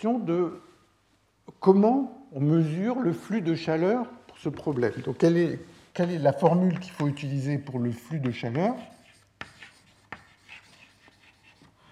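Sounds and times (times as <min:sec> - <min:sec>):
speech: 0:00.0 - 0:00.7, 0:01.5 - 0:09.0
scratchy strokes writing a heat flux formula by hand: 0:06.0 - 0:11.9
writing tool tapping: 0:08.2 - 0:08.7.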